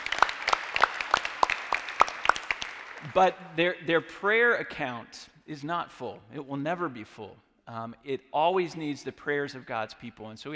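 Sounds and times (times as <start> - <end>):
audience clapping: 0.0 - 3.3
speech: 3.0 - 10.5.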